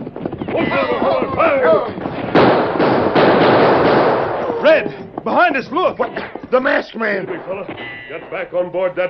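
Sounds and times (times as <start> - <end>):
speech: 0.5 - 2.0, 4.6 - 9.0
gunshots in a shootout: 0.7 - 4.7.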